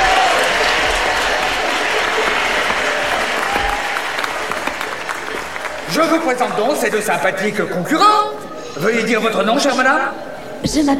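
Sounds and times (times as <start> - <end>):
audience applause: 0.0 - 7.1
speech: 6.0 - 10.9.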